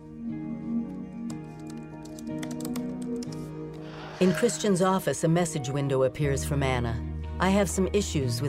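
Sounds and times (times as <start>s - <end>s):
sustained musical backdrop: 0.0s - 8.4s
typing on a laptop keyboard: 1.2s - 3.5s
speech: 4.2s - 8.4s.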